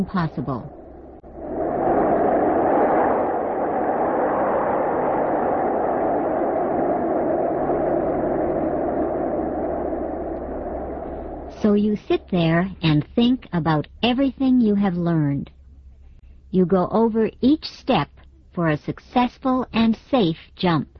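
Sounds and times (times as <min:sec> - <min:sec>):
speech: 0:00.0 - 0:00.8, 0:11.6 - 0:15.6, 0:16.5 - 0:20.9
airplane engine roar: 0:00.0 - 0:13.1
wind rushing through open airplane door: 0:00.7 - 0:11.9.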